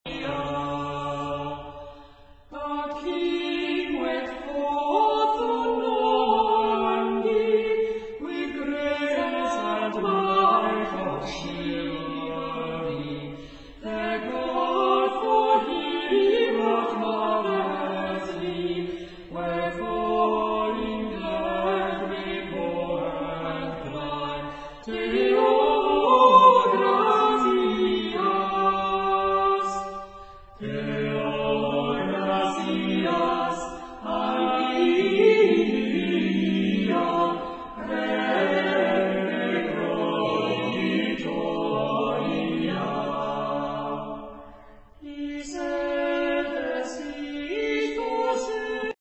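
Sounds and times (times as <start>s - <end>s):
medieval carols: 0.0s - 48.9s.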